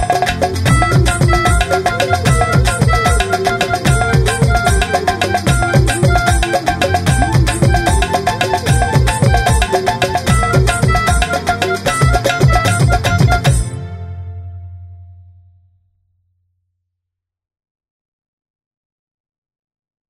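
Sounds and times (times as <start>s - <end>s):
instrumental jingle: 0.0s - 15.1s.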